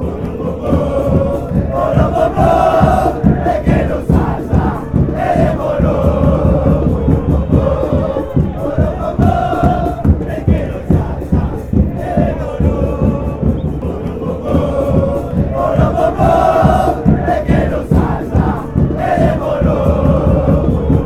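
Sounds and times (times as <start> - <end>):
Argentine fans chanting: 0.0 - 21.0.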